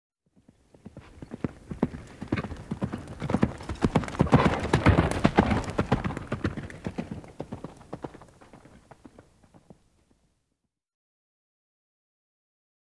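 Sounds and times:
horse galloping: 0.4 - 10.2.

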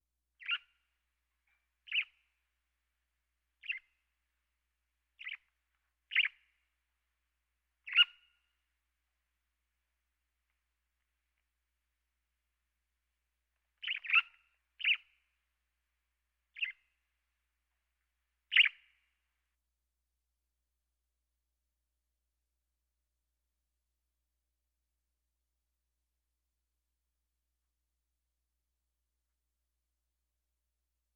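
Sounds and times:
sparrow chirping: 0.4 - 0.8, 1.8 - 2.2, 3.6 - 4.0, 5.2 - 5.5, 6.1 - 6.6, 7.8 - 8.4, 13.8 - 15.2, 16.5 - 16.9, 18.5 - 19.0.

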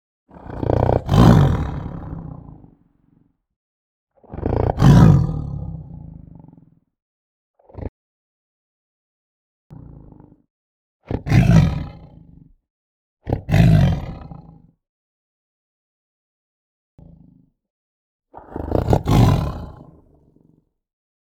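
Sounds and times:
tiger growling: 0.3 - 3.2, 4.2 - 6.7, 9.7 - 10.4, 11.2 - 12.4, 13.4 - 14.6, 18.4 - 20.6.

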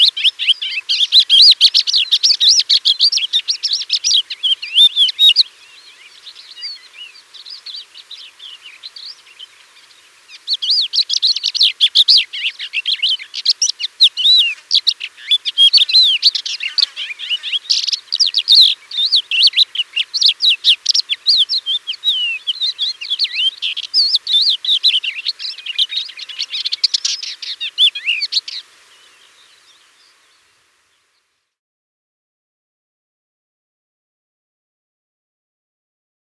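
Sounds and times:
Thekla's lark song: 0.0 - 31.3.

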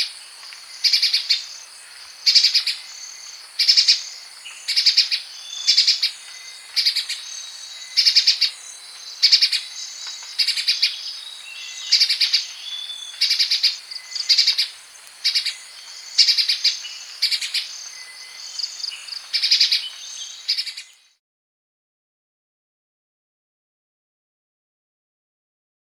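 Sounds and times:
insect-like hiss: 0.0 - 21.1
grey-breasted spiderhunter chattering calls: 3.6 - 21.0.

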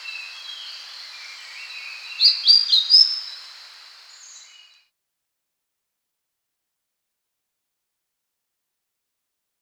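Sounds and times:
Citrine flycatcher singing: 0.0 - 4.7
background insects hissing: 0.0 - 4.7
speech: 2.2 - 3.3.

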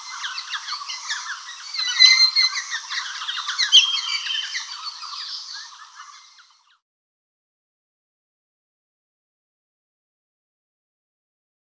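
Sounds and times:
white-cheeked laughingthrush flock chattering: 0.0 - 6.5.

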